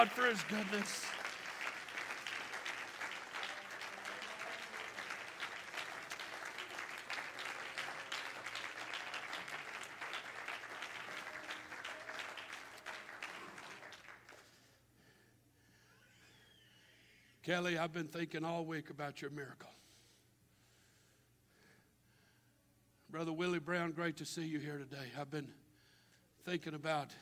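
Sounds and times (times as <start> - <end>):
speech: 0.0 - 1.2, 17.5 - 19.7, 23.1 - 25.6, 26.4 - 27.2
audience clapping hands: 0.0 - 14.6.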